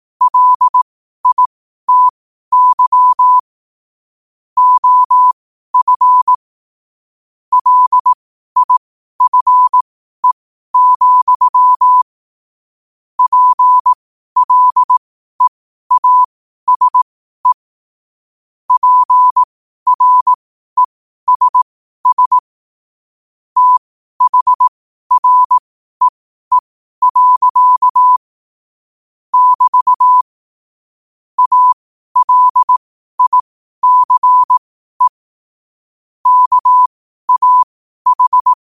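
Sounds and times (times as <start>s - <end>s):
morse code at 5 wpm: 0.2s - 3.4s, 4.6s - 6.4s, 7.5s - 12.0s, 13.2s - 17.6s, 18.7s - 22.4s, 23.6s - 28.2s, 29.3s - 30.3s, 31.4s - 35.2s, 36.2s - 38.6s.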